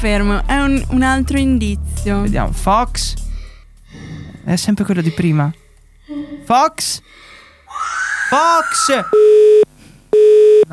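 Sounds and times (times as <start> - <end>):
speech: 0.0 - 3.2, 4.5 - 7.3, 8.3 - 9.6
telephone busy tone after a dropped call: 9.2 - 10.7.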